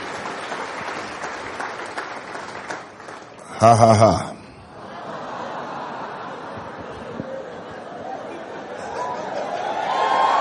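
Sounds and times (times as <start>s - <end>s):
audience clapping: 0.0s - 4.2s, 9.9s - 10.3s
laughter: 3.5s - 10.0s
speech: 3.6s - 4.3s.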